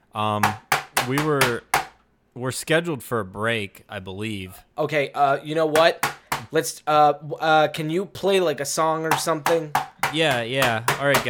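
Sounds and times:
speech: 0.2s - 1.7s, 2.4s - 11.2s
heavy knocks on a door: 0.4s - 2.0s, 5.8s - 6.5s, 9.1s - 11.2s.

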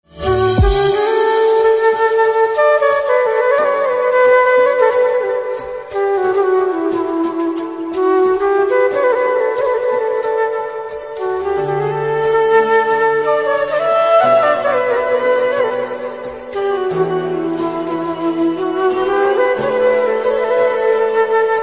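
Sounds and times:
flute: 0.0s - 21.6s.

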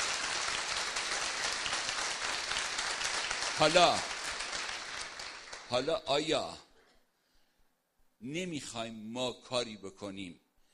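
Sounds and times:
audience clapping: 0.0s - 6.3s
speech: 3.6s - 4.1s, 5.7s - 6.7s, 8.2s - 10.4s.

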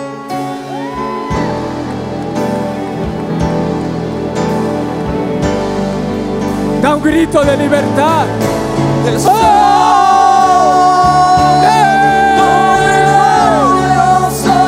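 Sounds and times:
music playing: 0.0s - 14.6s
large crowd clapping: 0.5s - 5.2s
speech: 7.0s - 10.0s.

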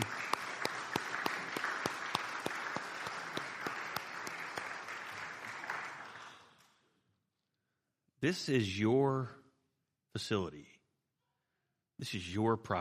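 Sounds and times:
audience applause: 0.0s - 6.7s
speech: 8.2s - 9.4s, 10.2s - 10.7s, 12.0s - 12.7s.

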